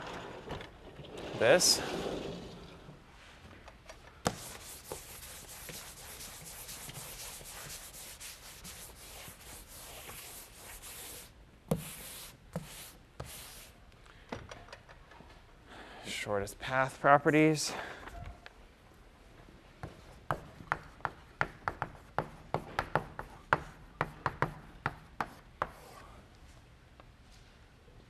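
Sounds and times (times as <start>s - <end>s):
speech: 1.4s - 2.3s, 16.3s - 17.9s
writing on a board during a university lecture: 4.3s - 13.7s, 19.8s - 26.0s.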